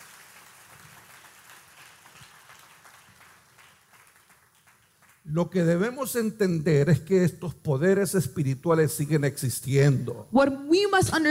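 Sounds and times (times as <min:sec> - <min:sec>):
audience applause: 0:00.0 - 0:05.3
speech: 0:05.2 - 0:11.2.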